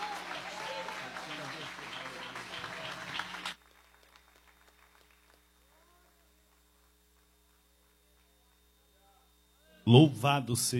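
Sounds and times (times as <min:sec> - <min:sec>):
audience applauding: 0:00.0 - 0:07.3.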